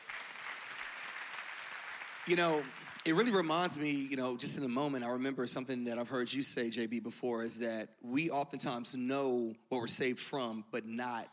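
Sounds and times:
audience clapping: 0.0s - 3.5s
speech: 2.3s - 11.3s.

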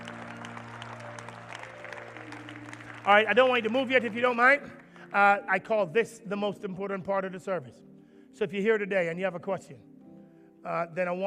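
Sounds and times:
crowd applauding: 0.0s - 5.2s
speech: 3.1s - 9.9s, 10.6s - 11.2s.

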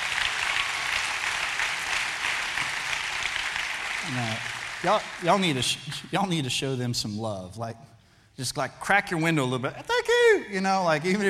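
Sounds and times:
audience applause for the parking team: 0.0s - 5.9s
speech: 4.0s - 11.2s.

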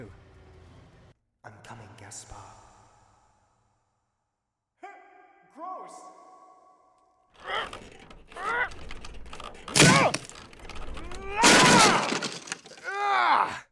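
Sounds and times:
speech: 1.4s - 2.6s, 5.6s - 6.2s
door broken down with crowbar, splintering and crashing: 7.4s - 13.1s
person grunting and groaning with effort: 11.2s - 13.6s.

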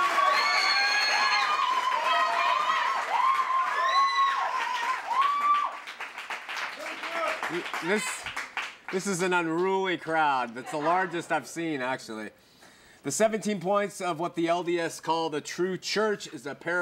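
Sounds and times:
audience applause: 0.0s - 9.6s
speech: 7.5s - 8.2s, 8.9s - 16.7s.

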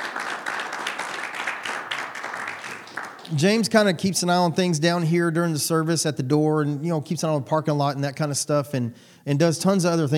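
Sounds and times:
audience applause for church volunteer: 0.0s - 3.4s
speech: 3.3s - 10.1s.

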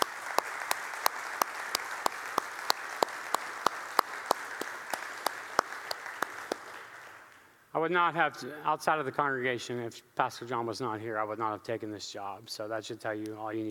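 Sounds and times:
audience applause: 0.0s - 7.5s
speech: 7.8s - 13.6s.

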